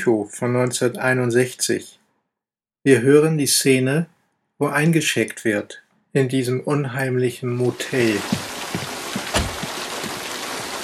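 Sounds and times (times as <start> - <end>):
speech: 0.0 - 2.0, 2.8 - 8.5
heavy rain: 7.7 - 10.8
drops striking a surface: 8.2 - 10.2.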